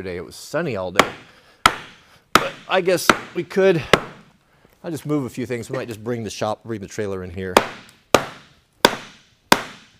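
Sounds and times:
speech: 0.0s - 1.4s, 2.7s - 4.1s, 4.8s - 7.9s
axe strikes splitting firewood: 1.0s - 4.2s, 7.6s - 9.9s.

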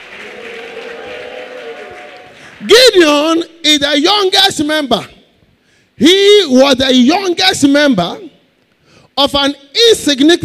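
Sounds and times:
audience shouting: 0.0s - 2.6s
audience clapping: 0.0s - 3.0s
speech: 2.6s - 5.2s, 6.0s - 8.3s, 9.2s - 10.4s.

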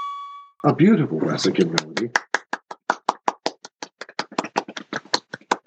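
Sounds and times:
speech: 0.6s - 2.3s
hands clapping: 1.6s - 5.6s.

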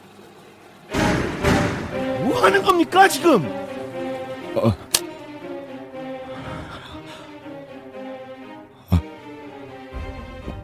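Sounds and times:
kitchen door flung open: 0.9s - 2.2s
speech: 2.4s - 3.6s, 4.5s - 4.8s.

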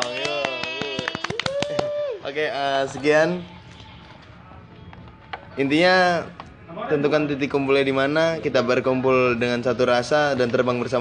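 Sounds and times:
hands clapping: 0.0s - 2.1s
speech: 2.3s - 3.6s, 5.6s - 10.9s.

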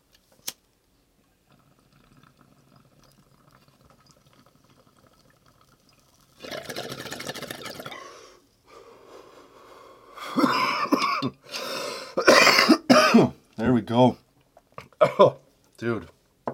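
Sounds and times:
person coughing after a bong hit: 10.3s - 11.4s, 12.2s - 13.4s, 15.0s - 15.4s
speech: 13.9s - 14.2s.

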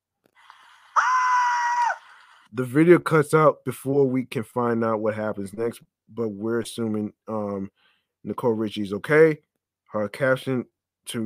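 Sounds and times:
woman screaming as flames spread across her right side: 0.9s - 2.1s
speech: 2.5s - 11.2s.

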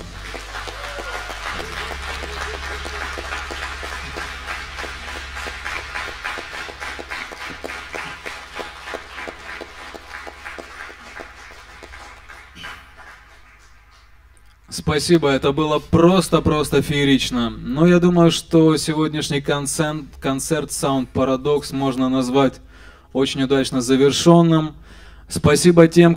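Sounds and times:
low rumble: 0.0s - 13.1s
concert audience applause: 0.0s - 14.4s
speech: 14.8s - 26.1s.

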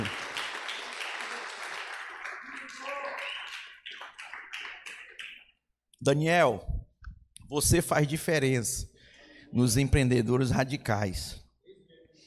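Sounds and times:
audience applause: 0.0s - 5.4s
speech: 6.0s - 6.8s, 7.5s - 8.9s, 9.5s - 11.4s.

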